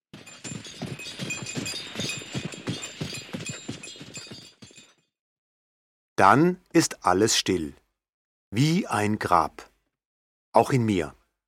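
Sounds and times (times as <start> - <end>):
hooves clip-clopping: 0.1 - 5.0
horse-drawn carriage clattering along: 0.1 - 5.0
carriage wheels rattling and clinking: 0.2 - 4.9
speech: 6.2 - 7.8, 8.5 - 9.7, 10.6 - 11.2.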